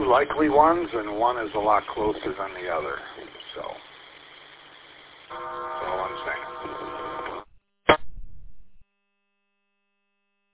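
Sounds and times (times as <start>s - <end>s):
speech: 0.1s - 3.7s
phone ringing: 5.3s - 7.5s.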